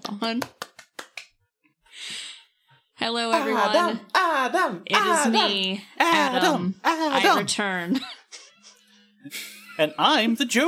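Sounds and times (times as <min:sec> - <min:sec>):
few people clapping: 0:00.0 - 0:01.4
speech: 0:00.2 - 0:00.6, 0:03.0 - 0:08.2, 0:09.2 - 0:10.6.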